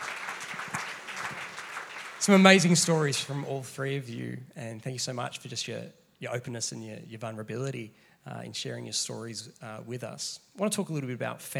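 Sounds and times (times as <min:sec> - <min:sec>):
audience clapping hands: 0:00.0 - 0:03.5
speech: 0:02.2 - 0:11.5.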